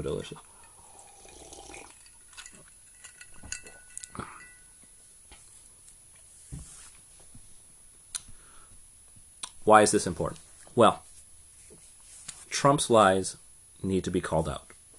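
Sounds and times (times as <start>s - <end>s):
speech: 0.0s - 0.6s, 9.7s - 11.1s, 12.6s - 14.7s
soft hiss: 0.0s - 14.9s
cup clinking while handled: 0.5s - 4.8s.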